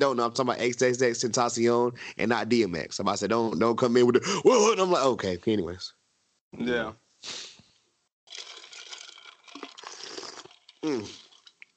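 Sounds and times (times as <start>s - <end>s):
speech: 0.0s - 7.5s, 10.8s - 11.2s
slurping sips from a cup: 8.3s - 11.5s
person saying satisfied ahh: 10.8s - 11.2s.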